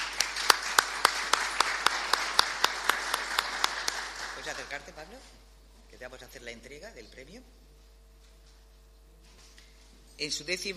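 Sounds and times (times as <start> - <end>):
sharp evenly spaced claps: 0.0 - 4.9
audience applause: 0.0 - 5.0
speech: 4.5 - 7.7, 10.2 - 10.7.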